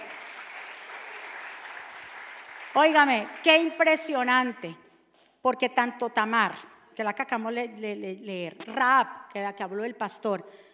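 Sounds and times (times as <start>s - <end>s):
loud applause from audience: 0.0s - 3.7s
speech: 2.8s - 4.8s, 5.4s - 10.7s.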